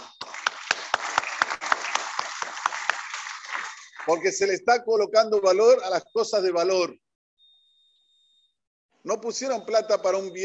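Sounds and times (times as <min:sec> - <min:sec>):
audience applause: 0:00.0 - 0:04.4
speech: 0:04.1 - 0:07.0, 0:09.0 - 0:10.4.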